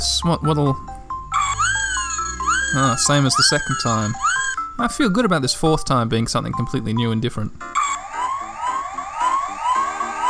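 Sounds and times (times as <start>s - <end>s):
speech: 0.0s - 1.0s, 2.7s - 7.8s
video game emergency vehicle sirens wailing: 1.3s - 4.7s, 7.7s - 10.2s.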